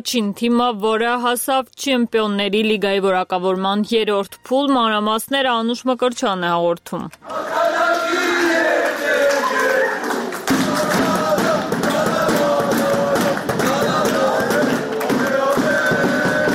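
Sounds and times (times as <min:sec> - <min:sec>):
speech: 0:00.0 - 0:08.0
football fans clapping: 0:07.2 - 0:16.5
football fans shouting and chanting at Zvartnots airport: 0:07.2 - 0:16.5
drum thumps: 0:10.4 - 0:16.5.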